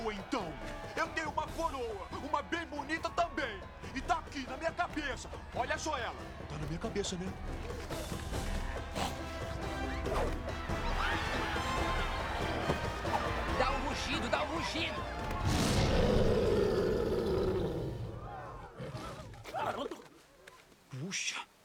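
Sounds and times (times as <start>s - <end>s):
excited talking and babble: 0.0s - 18.6s
speech: 5.1s - 8.2s, 14.0s - 16.4s
person roaring imitating a wild animal: 15.4s - 19.9s.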